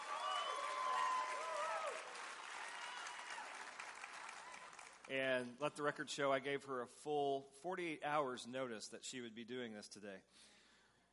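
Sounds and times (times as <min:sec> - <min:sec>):
audience applause greeting a woman guest onstage: 0:00.0 - 0:05.1
speech: 0:05.1 - 0:10.6.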